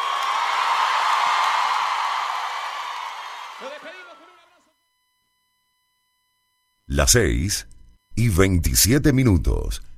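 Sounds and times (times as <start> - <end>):
audience applause: 0.0 - 4.6
speech: 7.0 - 9.9.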